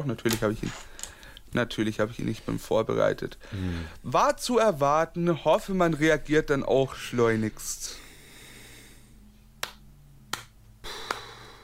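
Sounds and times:
speech: 0.0 - 8.0
low steady hum: 0.0 - 11.6
hand claps: 9.6 - 11.5.

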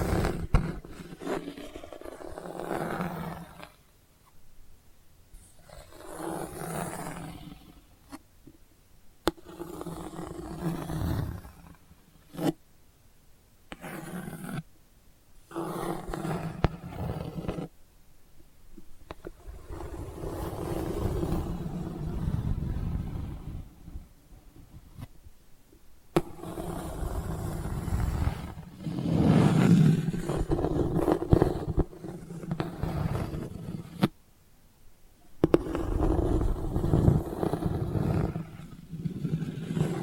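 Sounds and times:
delicate rough scratching: 0.0 - 3.8, 5.4 - 8.2, 9.3 - 12.6, 13.7 - 14.7, 15.4 - 17.7, 19.1 - 25.1, 26.2 - 34.1, 35.4 - 40.0.

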